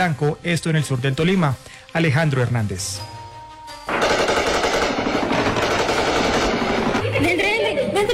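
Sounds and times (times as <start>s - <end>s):
speech: 0.0s - 3.2s, 7.2s - 8.1s
gunfire during armed combat: 3.9s - 7.4s.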